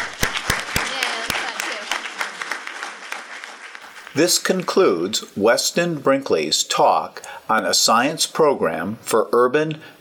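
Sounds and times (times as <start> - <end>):
audience clapping: 0.0 - 5.2
speech: 4.2 - 9.9.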